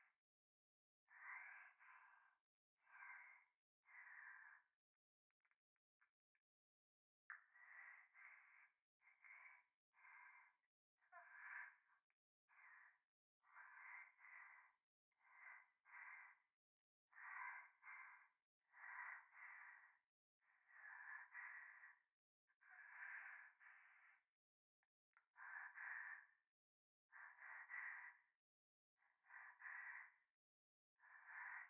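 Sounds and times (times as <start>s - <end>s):
breathing close to left ear in bath: 1.1s - 4.8s, 7.6s - 10.7s, 11.3s - 16.5s, 17.1s - 22.1s, 22.7s - 24.3s, 25.4s - 26.4s, 27.1s - 28.3s, 29.0s - 30.3s, 31.0s - 31.6s.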